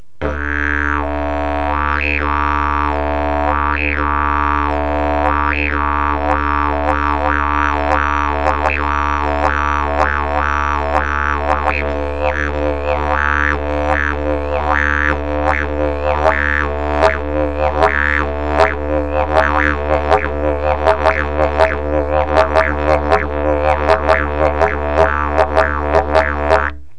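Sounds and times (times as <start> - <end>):
didgeridoo: 0.2 - 26.9.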